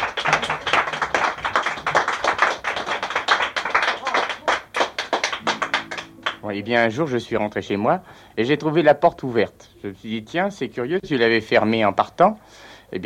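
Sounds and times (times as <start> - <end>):
audience applause in a cabaret: 0.0 - 6.4
speech: 6.5 - 13.0.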